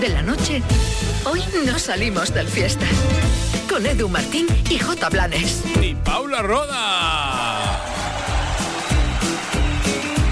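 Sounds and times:
speech: 0.5 - 7.2
canned applause: 7.0 - 10.3.

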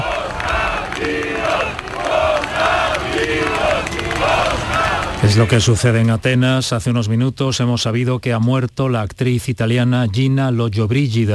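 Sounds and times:
crowd voices acclaiming and cheering: 0.0 - 6.3
speech: 5.2 - 11.3.

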